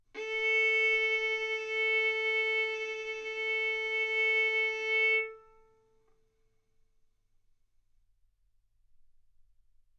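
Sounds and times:
violin bowed arco notes: 0.2 - 5.8.

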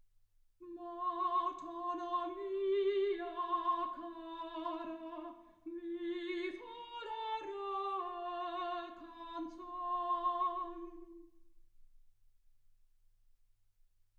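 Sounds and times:
soprano singing: 0.6 - 11.4.

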